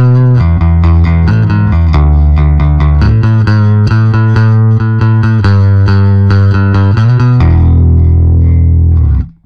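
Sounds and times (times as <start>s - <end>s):
saturated bass: 0.0s - 9.4s.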